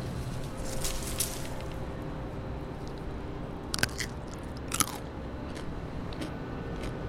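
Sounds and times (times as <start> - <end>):
low steady hum: 0.0 - 7.0
crunchy bites into a small bite-sized cucumber: 3.7 - 7.0
wet chewing: 3.7 - 7.0.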